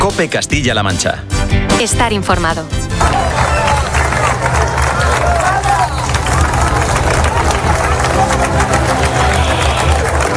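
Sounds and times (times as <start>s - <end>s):
speech: 0.1s - 3.2s
outdoor crowd applauding police after mass: 2.9s - 10.3s
murmur of many voices: 3.0s - 10.3s.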